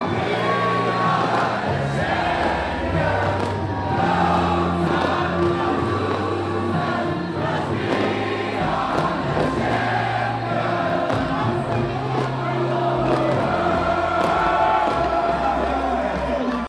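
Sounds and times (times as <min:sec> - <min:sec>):
crowd singing: 0:00.0 - 0:16.6.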